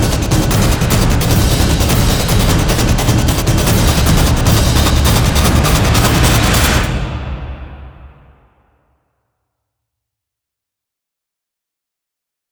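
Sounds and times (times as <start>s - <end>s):
drums: 0.0s - 8.5s.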